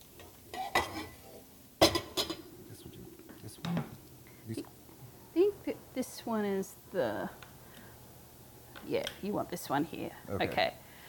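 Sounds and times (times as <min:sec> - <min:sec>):
frying pan clanking on a stovetop: 0:00.2 - 0:01.2, 0:01.8 - 0:02.4
people speaking quietly: 0:02.6 - 0:04.7
speech: 0:06.3 - 0:07.4, 0:08.9 - 0:10.8.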